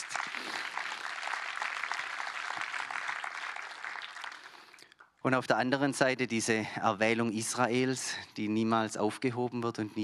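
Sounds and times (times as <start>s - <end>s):
audience applause: 0.0s - 4.8s
speech: 5.2s - 10.0s.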